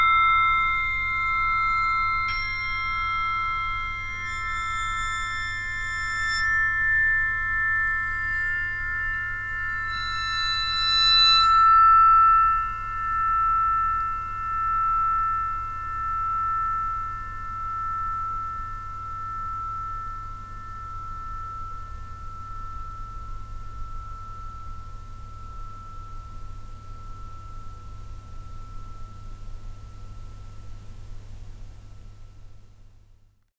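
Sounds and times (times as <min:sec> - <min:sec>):
bells ringing in Barcelona Spain: 0:00.0 - 0:26.6.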